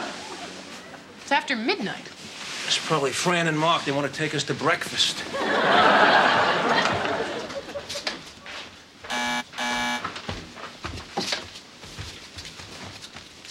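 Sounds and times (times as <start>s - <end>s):
speech: 1.3s - 6.5s
laughter: 5.3s - 8.2s
electric doorbell buzzing: 9.1s - 10.1s.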